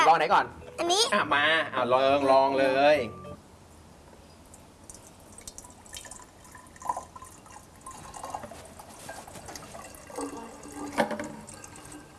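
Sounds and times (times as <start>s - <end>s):
speech: 0.2s - 3.2s
water pouring into a container: 4.9s - 12.1s.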